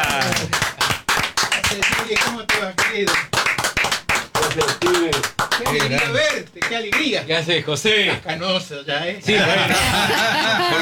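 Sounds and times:
audience applause: 0.0s - 6.3s, 9.7s - 10.8s
speech: 6.7s - 10.8s
laughter: 9.2s - 10.8s.

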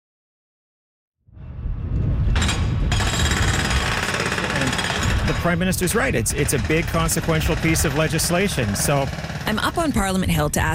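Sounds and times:
building at a construction site across the street: 2.2s - 10.7s
speech: 5.4s - 10.7s.

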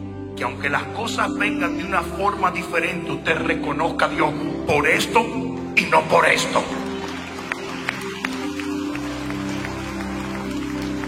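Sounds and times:
speech: 0.4s - 6.8s
audience applause: 6.3s - 11.0s.

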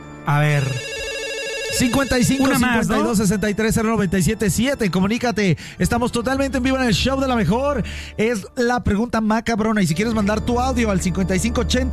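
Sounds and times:
speech: 0.2s - 1.0s, 1.7s - 11.9s
electronic telephone ringtone for an incoming call to a live call-in show: 0.4s - 3.2s.

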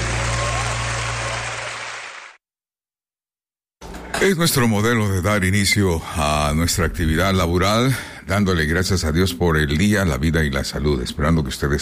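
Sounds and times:
applause: 0.0s - 2.4s
speech: 4.2s - 11.8s.

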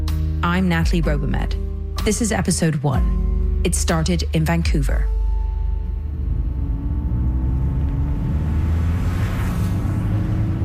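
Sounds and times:
speech: 0.5s - 5.2s
car driving down a freeway from Los Angeles toward Long Beach, California: 3.1s - 10.6s.

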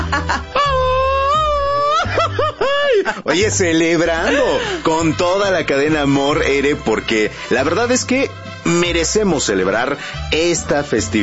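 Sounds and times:
laughter: 0.0s - 3.5s, 4.1s - 5.1s
speech: 0.1s - 0.9s, 2.2s - 11.2s
traditional Mexican grito shout: 0.6s - 2.1s.

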